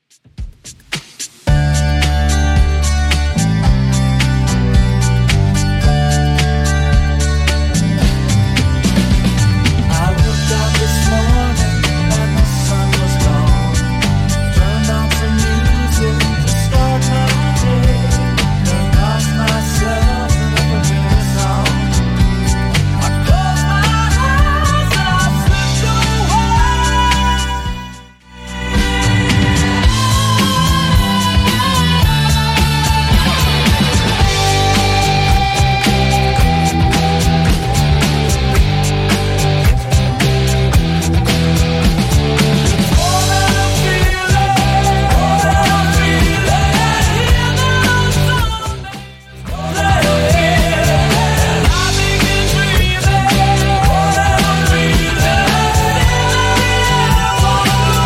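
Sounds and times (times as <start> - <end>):
80s-style beat at 110 bpm: 0.0 - 58.0.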